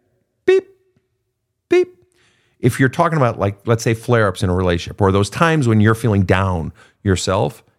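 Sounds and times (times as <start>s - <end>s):
voice imitating a heart monitor beep: 0.5s - 0.8s
speech: 2.6s - 7.7s.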